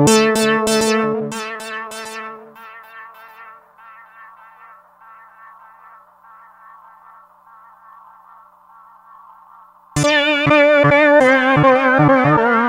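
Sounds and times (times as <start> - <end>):
synth bass riff: 0.1 - 6.5, 10.0 - 12.5.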